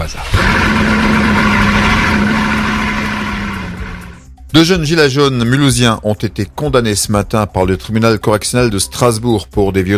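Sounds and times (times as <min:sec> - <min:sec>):
Bugatti car engine during a pre-delivery test run at Colmar airfield: 0:00.2 - 0:04.3
speech: 0:04.5 - 0:09.9.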